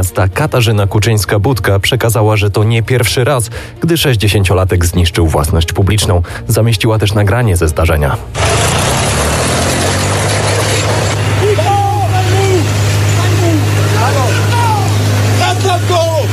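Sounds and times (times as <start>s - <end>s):
speech: 0.0s - 9.0s
tractor engine running: 8.3s - 16.3s
voices calling out: 11.1s - 16.3s.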